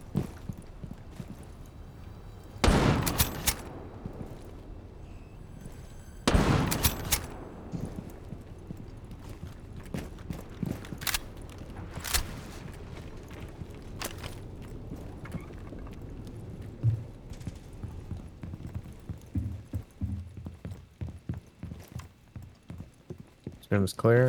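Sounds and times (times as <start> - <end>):
scattered clicks and thuds: 0.0 - 4.6, 5.6 - 23.4
video game gunfire: 1.1 - 15.7
speech: 23.7 - 24.2.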